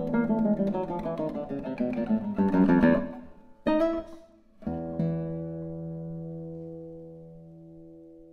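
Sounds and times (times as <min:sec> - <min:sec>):
tarantella music: 0:00.0 - 0:06.6.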